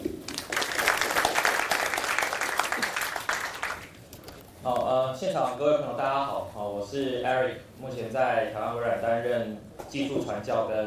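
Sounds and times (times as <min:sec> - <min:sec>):
audience applause: 0:00.3 - 0:04.0
speech: 0:05.2 - 0:10.8.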